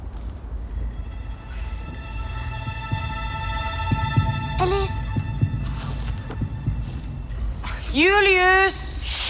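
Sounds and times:
droning hum: 0:00.0 - 0:09.2
deep heartbeat: 0:00.9 - 0:08.0
speech: 0:08.0 - 0:08.9.

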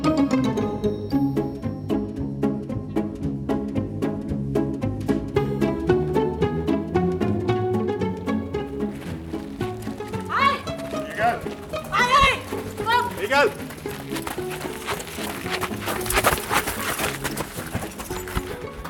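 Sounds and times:
music: 0:00.0 - 0:18.8
running footsteps toward a prison wall: 0:08.5 - 0:18.8
man talking: 0:10.9 - 0:12.4, 0:13.0 - 0:13.7.

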